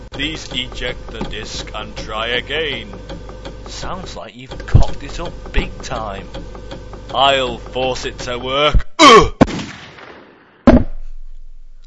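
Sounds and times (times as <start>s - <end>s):
speech: 0.2s - 9.3s
gunshots fired at an Xbox logo: 9.4s - 11.0s.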